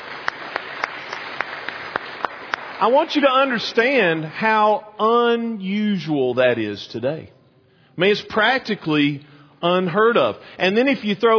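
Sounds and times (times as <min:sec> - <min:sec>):
church gathering clapping for long-serving pastors: 0:00.0 - 0:03.6
speech: 0:02.8 - 0:07.4, 0:08.0 - 0:11.3.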